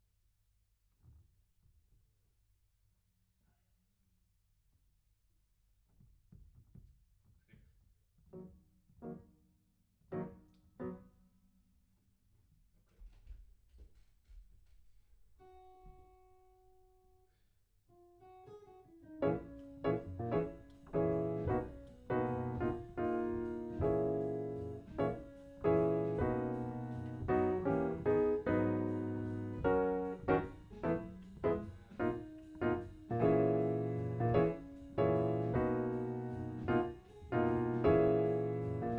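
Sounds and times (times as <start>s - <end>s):
piano: 8.3s - 11.6s, 18.3s - 38.9s.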